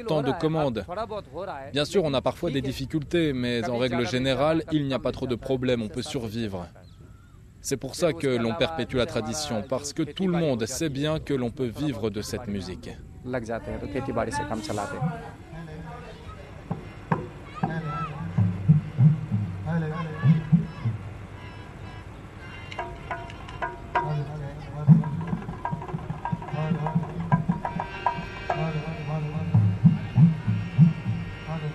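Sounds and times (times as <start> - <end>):
speech: 0.0 - 6.8, 7.6 - 15.4
electric generator humming in background: 16.5 - 31.7.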